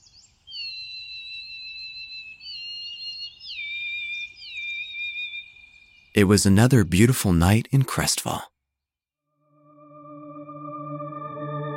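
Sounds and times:
birds singing: 0.0 - 6.3
speech: 6.2 - 8.5.

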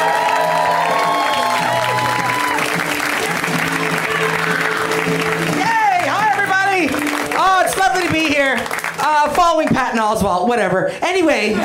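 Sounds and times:
comedy show audience whoops and shouts: 0.0 - 2.8, 3.7 - 5.0
comedy show audience clapping: 0.0 - 9.9
speech: 9.5 - 11.6.

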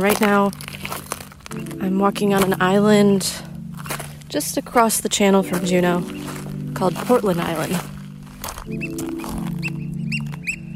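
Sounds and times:
speech: 0.0 - 0.7, 1.5 - 3.5, 4.3 - 8.0, 8.7 - 9.3
oystercatchers calling: 5.1 - 10.7.

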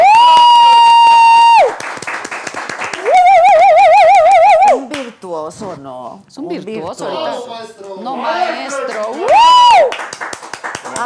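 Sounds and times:
audience applause: 0.0 - 4.8, 8.3 - 11.0
speech: 6.9 - 9.0.

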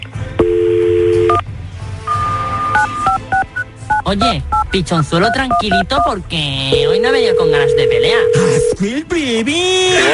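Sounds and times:
steady dual-tone dial note: 0.4 - 1.4, 6.8 - 8.7
touch-tone beeps of a phone number being dialed: 2.1 - 6.1, 6.7 - 8.8
speech: 4.1 - 10.1.

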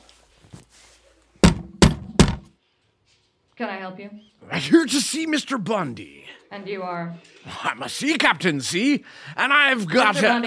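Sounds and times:
knocking on a door: 1.4 - 2.5
speech: 3.6 - 10.4.

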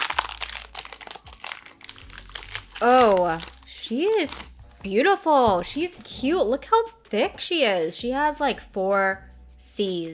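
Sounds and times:
Oreo cookie package crinkling as torn open: 0.0 - 4.5
sharp crunching: 0.0 - 4.5
speech: 2.8 - 10.1.

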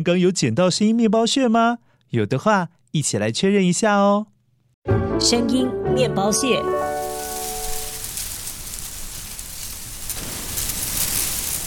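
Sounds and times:
speech: 0.0 - 6.8
musical tone: 4.9 - 8.1
silvergrass rustling in the wind: 6.8 - 11.6.

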